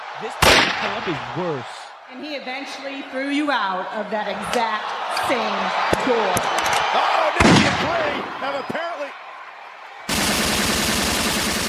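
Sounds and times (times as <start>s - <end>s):
speech: 0.2s - 9.2s
rapid gunfire: 10.1s - 11.6s.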